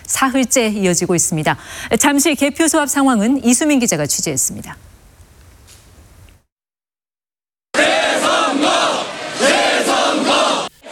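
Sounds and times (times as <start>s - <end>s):
speech: 0.1s - 5.0s
protest crowd chanting: 7.8s - 10.9s.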